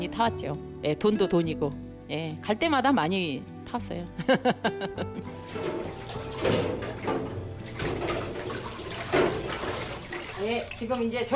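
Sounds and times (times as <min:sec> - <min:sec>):
speech: 0:00.0 - 0:07.3, 0:10.4 - 0:11.3
laughter: 0:04.2 - 0:05.4
running water for washing dishes: 0:05.2 - 0:11.3
dishes clinking and crockery knocking against the sink: 0:05.3 - 0:08.5.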